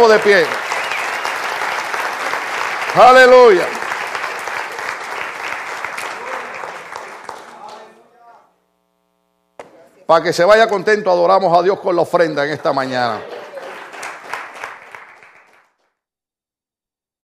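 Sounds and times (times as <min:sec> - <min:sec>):
audience applauding: 0:00.0 - 0:08.1, 0:12.3 - 0:15.9
speech: 0:00.1 - 0:00.6, 0:02.9 - 0:03.8, 0:10.1 - 0:13.4.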